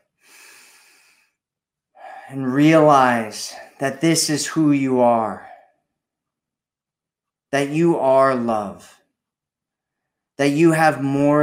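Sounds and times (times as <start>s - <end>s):
deep breath drawn in during a guided self-love meditation: 0.0s - 1.4s, 2.0s - 2.4s
speech: 2.3s - 5.5s, 7.5s - 9.0s, 10.4s - 11.4s.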